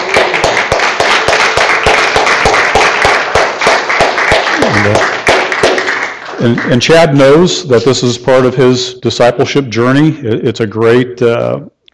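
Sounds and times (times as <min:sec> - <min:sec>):
audience giving a hand clap: 0:00.0 - 0:07.0
speech: 0:06.4 - 0:11.9.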